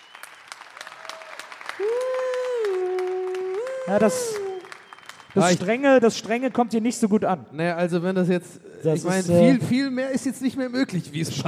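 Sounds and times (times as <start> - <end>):
audience applause: 0.0 - 6.0
speech: 3.9 - 4.4, 5.3 - 11.4.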